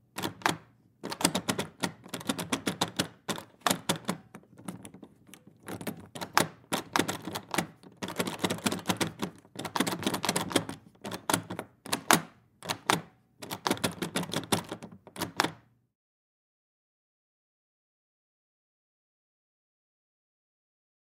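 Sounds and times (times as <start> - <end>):
door handle: 0.2 - 15.6.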